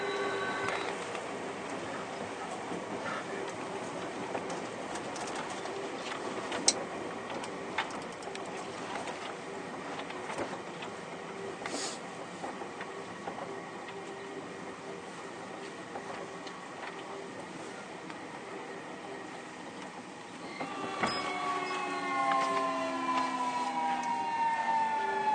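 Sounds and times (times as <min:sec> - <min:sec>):
Keio 1000 series train whining tone: 0:00.0 - 0:01.0, 0:20.3 - 0:25.3
Keio 1000 series train running between Shibuya and Kichijoji: 0:00.0 - 0:25.3.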